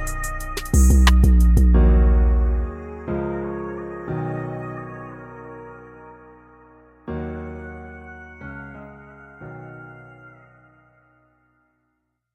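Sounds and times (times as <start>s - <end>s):
hip hop music: 0.0s - 4.8s.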